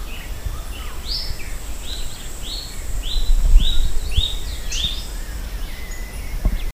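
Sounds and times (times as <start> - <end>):
loud low rumbling: 0.0 - 5.9
bird whistled song: 0.0 - 6.7.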